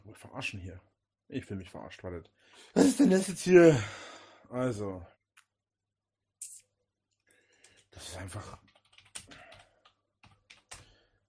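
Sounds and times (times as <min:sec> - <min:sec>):
speech: 0:00.2 - 0:05.1, 0:08.0 - 0:08.6
typing on a computer keyboard with plastic keys: 0:07.6 - 0:10.9.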